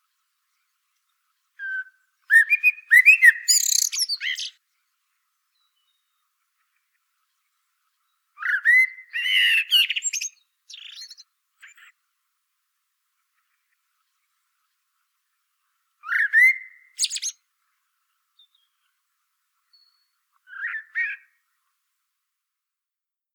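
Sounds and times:
common blackbird singing: 1.6 - 4.5, 8.4 - 11.2, 16.1 - 17.3.

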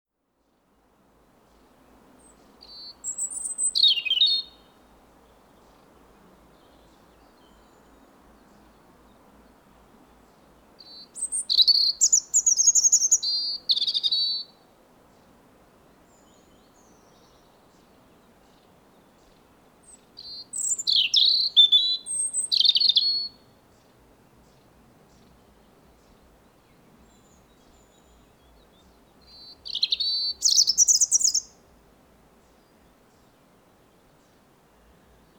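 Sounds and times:
European robin singing: 1.5 - 14.6, 16.0 - 31.8.

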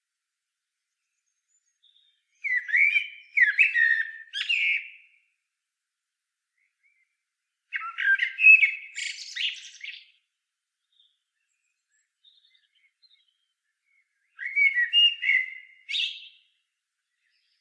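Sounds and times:
common blackbird singing: 1.1 - 5.3, 6.6 - 10.2, 10.9 - 17.5.

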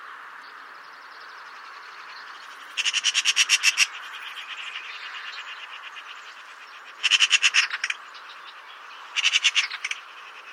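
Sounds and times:
Eurasian magpie Pica pica chattering: 2.7 - 4.8, 6.9 - 8.0, 9.1 - 10.5.

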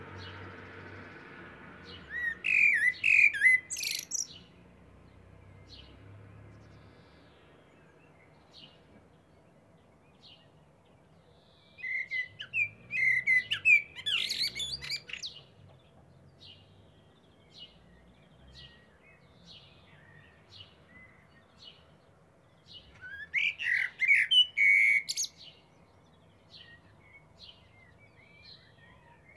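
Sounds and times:
Eurasian blackbird Turdus merula singing fluted warbling phrases with high squeaky notes: 1.8 - 4.7, 6.6 - 29.3.

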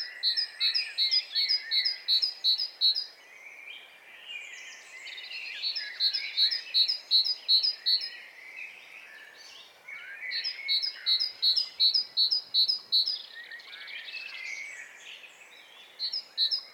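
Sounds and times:
great tit double-note phrases: 0.0 - 3.1, 5.6 - 8.1, 10.0 - 13.3, 15.8 - 16.7
other birds chirping and warbling: 0.0 - 16.7.

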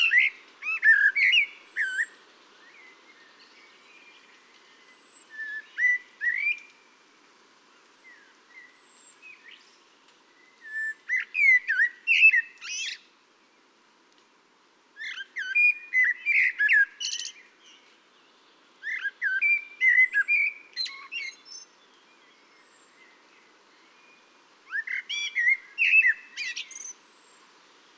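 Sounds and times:
common blackbird singing: 0.0 - 6.7, 10.4 - 13.1, 15.0 - 27.4.

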